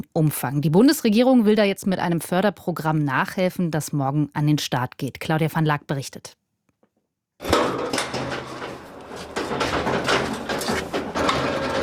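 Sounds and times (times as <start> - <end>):
speech: 0.0 - 6.4
freight elevator operating: 7.4 - 11.8.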